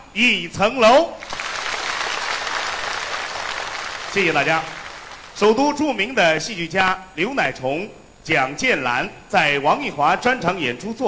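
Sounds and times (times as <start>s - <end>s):
speech: 0.2s - 1.3s, 4.1s - 4.8s, 5.4s - 11.0s
audience applause: 1.2s - 5.6s.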